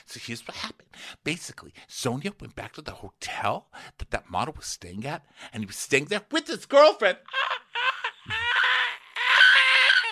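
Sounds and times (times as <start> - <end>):
speech: 0.0 - 7.5
person trying to squeal: 7.3 - 10.1.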